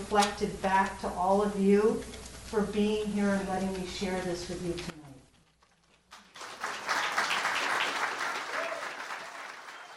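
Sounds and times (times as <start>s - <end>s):
speech: 0.1s - 4.9s
audience applause: 6.1s - 9.9s.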